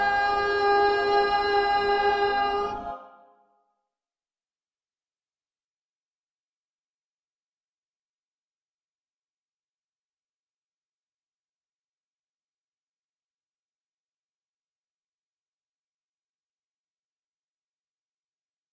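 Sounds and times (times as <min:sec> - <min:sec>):
alto voice: 0:00.0 - 0:03.4.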